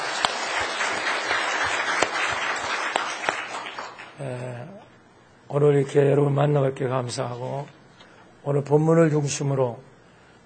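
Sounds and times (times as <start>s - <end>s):
crowd applauding: 0.0s - 4.2s
speech: 5.5s - 7.8s, 8.4s - 9.9s.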